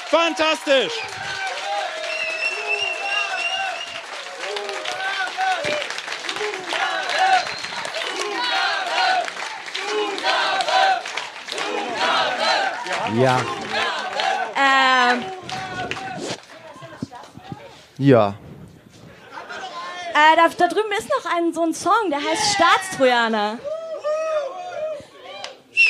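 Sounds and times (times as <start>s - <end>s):
loud cheers whoops and shouting voices: 0.0s - 10.2s, 12.6s - 14.0s, 23.6s - 25.8s
audience applause: 0.0s - 16.9s
speech: 0.1s - 1.2s, 13.1s - 13.7s, 18.0s - 18.4s, 20.2s - 23.7s.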